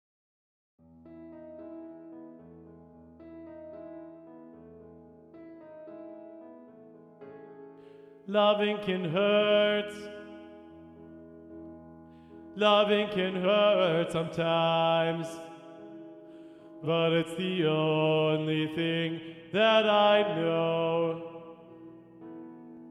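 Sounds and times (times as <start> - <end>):
tenor singing: 8.2 - 10.9, 12.5 - 16.0, 16.8 - 21.9.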